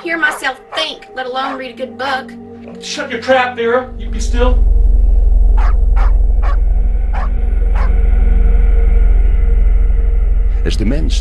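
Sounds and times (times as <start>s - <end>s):
dogs barking: 0.0s - 1.7s, 5.6s - 8.0s
speech: 0.0s - 4.7s, 10.6s - 11.1s
constant low rumbling hum: 0.0s - 11.1s.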